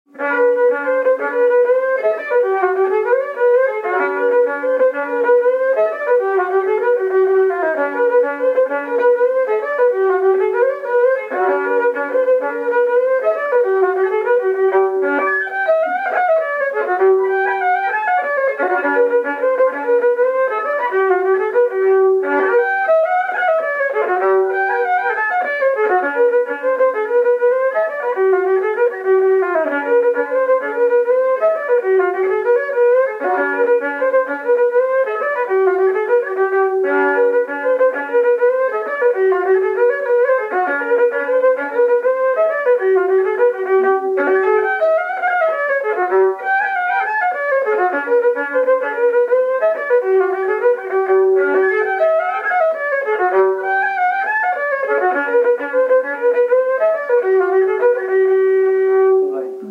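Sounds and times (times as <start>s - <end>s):
jig tune: 0.1s - 59.7s.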